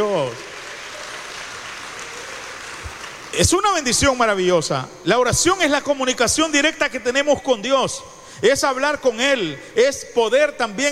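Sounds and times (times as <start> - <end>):
audience applause: 0.0 - 3.4
speech: 3.4 - 10.9.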